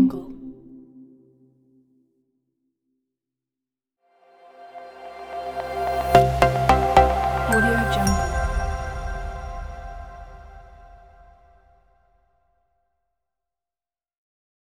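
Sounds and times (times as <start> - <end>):
corporate logo jingle: 4.8 - 11.7.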